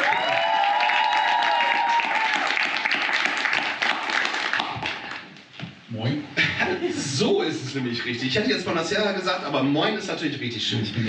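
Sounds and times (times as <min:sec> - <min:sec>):
applause: 0:00.0 - 0:05.3
laughter: 0:06.4 - 0:07.2
speech: 0:07.2 - 0:11.0.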